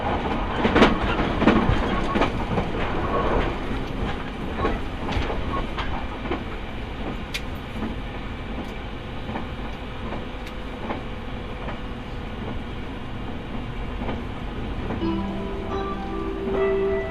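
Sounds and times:
train rumble heard from aboard the train: 0.0s - 17.0s
sustained tone: 15.0s - 17.0s.

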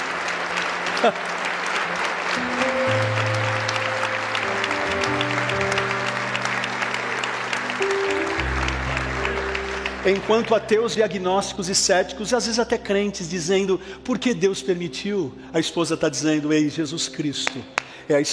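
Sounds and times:
audience applauding: 0.0s - 11.8s
sustained low keyboard chords: 0.8s - 17.1s
speech: 1.0s - 1.4s, 10.0s - 18.3s.

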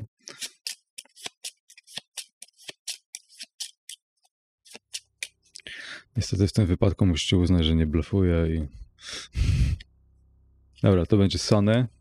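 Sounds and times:
playing cards being handled for a card game: 0.3s - 4.0s
speech: 6.2s - 9.2s, 10.8s - 11.9s.

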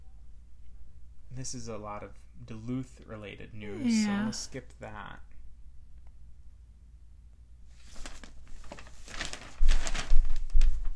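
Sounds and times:
speech: 1.3s - 5.3s
paper rustling and crinkling as it is handled: 7.7s - 10.9s.

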